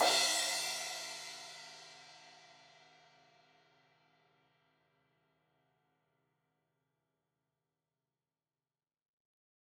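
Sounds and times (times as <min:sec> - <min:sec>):
16-inch crash cymbal hit on the edge: 0:00.0 - 0:01.8.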